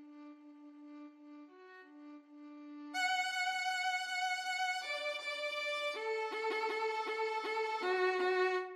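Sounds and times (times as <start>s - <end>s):
violin duet playing a march: 3.0s - 8.7s.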